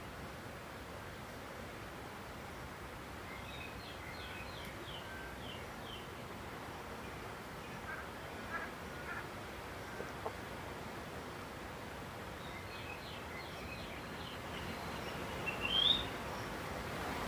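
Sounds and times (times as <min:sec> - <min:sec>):
low hiss and rustle near Simonga Zambia: 0:00.0 - 0:17.2
birds chirping near Simonga Zambia: 0:03.3 - 0:10.5, 0:12.4 - 0:16.6.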